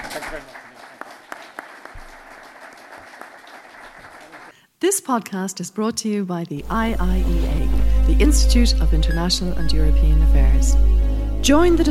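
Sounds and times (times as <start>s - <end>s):
audience applause: 0.0s - 4.5s
speech: 0.3s - 0.6s, 4.8s - 11.8s.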